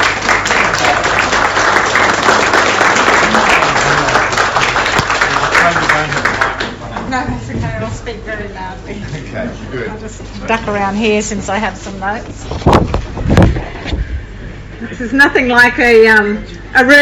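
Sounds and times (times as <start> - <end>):
audience applause: 0.0 - 6.8
speech: 7.9 - 13.4, 15.0 - 17.0.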